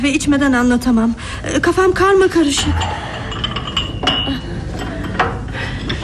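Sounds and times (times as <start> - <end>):
speech: 0.0 - 3.2
porcelain coffee cups clinking on saucers: 2.6 - 6.0.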